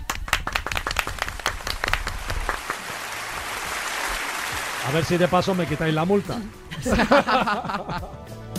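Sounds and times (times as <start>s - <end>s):
applause: 0.0s - 6.6s
speech: 4.9s - 8.3s
laughter: 6.7s - 8.4s.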